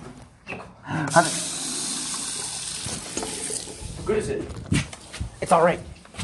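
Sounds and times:
speech: 0.9s - 1.5s, 4.1s - 4.6s, 5.4s - 5.9s
water gushing from a tap: 1.1s - 4.1s.

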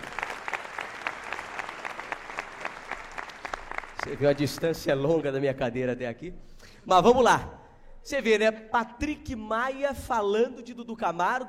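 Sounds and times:
audience applause: 0.0s - 5.1s
speech: 4.0s - 11.4s.

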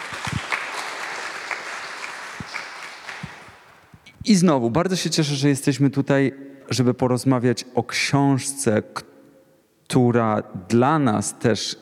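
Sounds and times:
audience applause: 0.0s - 3.8s
speech: 2.4s - 2.7s, 4.2s - 9.1s, 9.9s - 11.8s.

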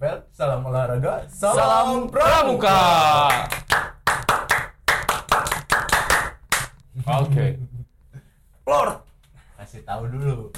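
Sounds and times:
speech: 0.0s - 3.8s, 9.8s - 10.5s
scout clap, tepuk pramuka rhythmic hand clapping: 3.2s - 6.8s.

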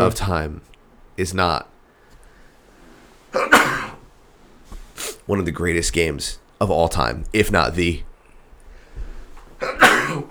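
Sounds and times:
speech: 0.0s - 1.7s, 3.3s - 3.6s, 5.3s - 8.1s
person sneezing: 3.4s - 4.0s, 5.0s - 5.2s, 9.6s - 10.2s.

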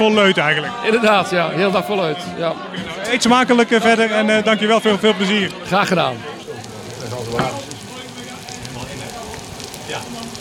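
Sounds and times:
speech: 0.0s - 6.3s, 7.2s - 7.7s
faint indistinct voices: 0.0s - 10.4s
eggs frying in a pan: 5.2s - 10.4s.

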